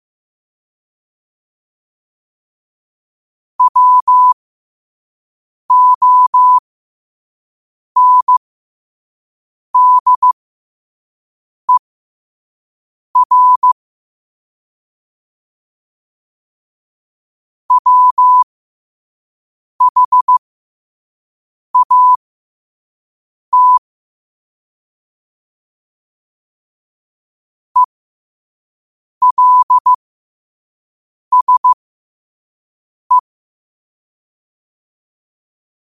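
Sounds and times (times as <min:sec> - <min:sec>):
morse code at 5 wpm: 0:03.6 - 0:04.4, 0:05.7 - 0:06.6, 0:08.0 - 0:08.4, 0:09.8 - 0:10.4, 0:13.2 - 0:13.8, 0:17.7 - 0:18.4, 0:19.8 - 0:20.4, 0:21.8 - 0:22.2, 0:23.5 - 0:23.8, 0:29.2 - 0:30.0, 0:31.3 - 0:31.8.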